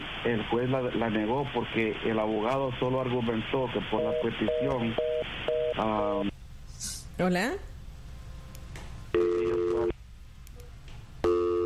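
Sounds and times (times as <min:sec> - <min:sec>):
speech: 0:00.2 - 0:05.0, 0:05.8 - 0:06.3, 0:07.2 - 0:07.7
telephone busy tone after a dropped call: 0:04.0 - 0:05.9, 0:09.2 - 0:09.9, 0:11.2 - 0:11.6.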